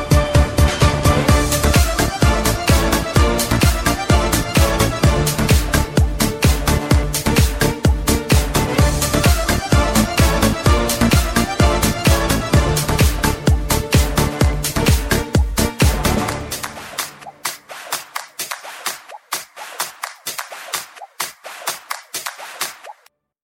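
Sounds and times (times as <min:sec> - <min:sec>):
orchestra: 0:00.0 - 0:17.2.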